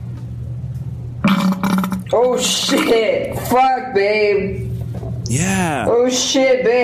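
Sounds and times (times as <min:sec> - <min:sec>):
vaginal fart: 0:01.2 - 0:02.1
speech: 0:02.1 - 0:04.6, 0:05.3 - 0:06.8.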